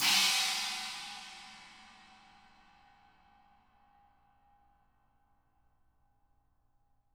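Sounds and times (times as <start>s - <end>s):
china crash cymbal: 0.0s - 2.7s.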